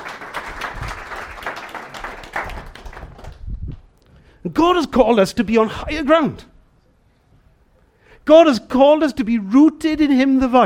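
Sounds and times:
crowd applause: 0:00.0 - 0:03.4
speech: 0:04.5 - 0:06.5, 0:08.3 - 0:10.6.

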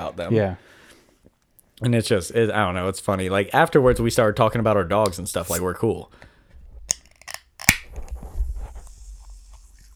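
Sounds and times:
speech: 0:00.1 - 0:00.8, 0:01.8 - 0:06.3
soda can being opened slowly: 0:05.0 - 0:05.8, 0:06.8 - 0:08.2.

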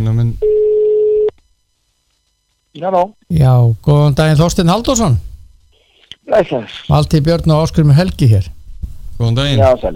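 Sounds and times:
speech: 0:00.0 - 0:00.7, 0:02.8 - 0:05.3, 0:06.3 - 0:08.6, 0:09.2 - 0:09.9
telephone call ringing out to Kópavogur: 0:00.4 - 0:01.3.

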